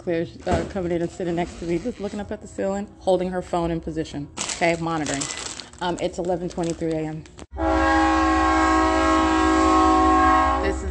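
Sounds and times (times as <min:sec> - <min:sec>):
speech: 0:00.0 - 0:07.7
passing train horn blast: 0:07.5 - 0:10.8.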